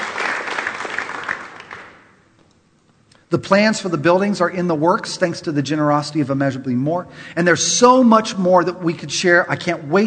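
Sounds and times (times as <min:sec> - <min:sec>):
audience applauding: 0:00.0 - 0:02.1
speech: 0:03.3 - 0:10.0.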